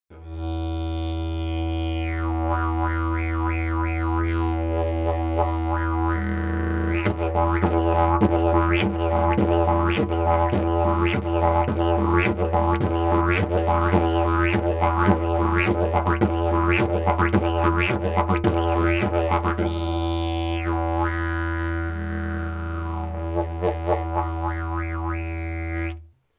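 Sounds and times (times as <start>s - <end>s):
maple didgeridoo: 0.1s - 26.0s.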